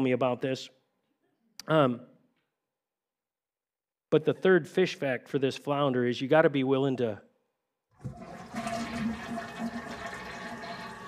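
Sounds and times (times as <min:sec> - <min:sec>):
speech: 0:00.0 - 0:00.8, 0:01.6 - 0:02.1, 0:04.1 - 0:07.3
toilet flushing: 0:08.0 - 0:11.0.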